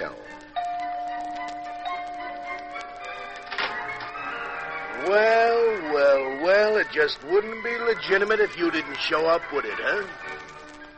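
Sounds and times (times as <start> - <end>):
doorbell ringing: 0.6 - 3.9
speech: 5.0 - 5.4, 6.4 - 10.6.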